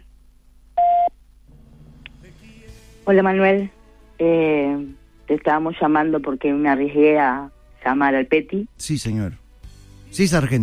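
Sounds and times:
faint low hum: 0.0 - 10.6
voicemail beep on a phone line: 0.8 - 1.1
speech: 3.1 - 9.4, 10.1 - 10.6.

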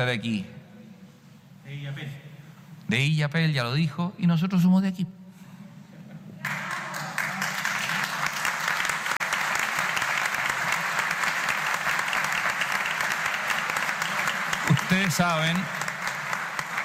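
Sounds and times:
speech: 0.0 - 0.6, 1.7 - 2.3, 2.9 - 5.2, 15.2 - 15.8
audience applause: 6.4 - 16.8.

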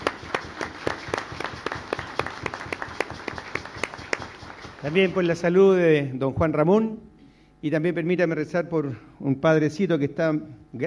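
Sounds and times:
audience applauding: 0.0 - 5.4
speech: 4.8 - 10.8.

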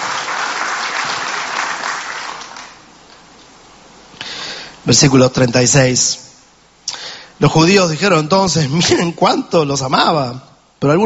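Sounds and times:
audience applause: 0.0 - 2.9
speech: 4.8 - 6.2, 7.4 - 11.0.

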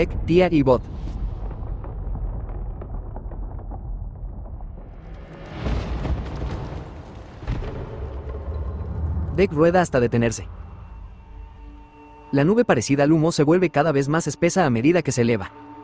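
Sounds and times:
speech: 0.0 - 1.0, 9.4 - 10.6, 12.3 - 15.7
creature exploding into countless particles: 0.0 - 12.0.

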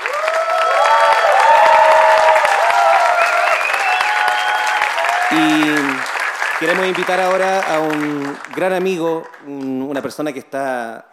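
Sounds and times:
cheers and whoops: 0.0 - 6.0
large audience applause: 0.0 - 10.0
speech: 6.6 - 11.1.

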